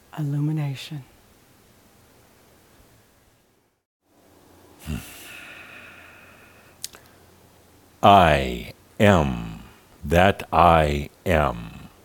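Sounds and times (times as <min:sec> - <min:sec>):
faint hiss: 0:00.0 - 0:12.0
speech: 0:00.2 - 0:01.1, 0:08.0 - 0:09.4, 0:10.0 - 0:11.8
deep inhale during guided meditation: 0:04.8 - 0:07.3.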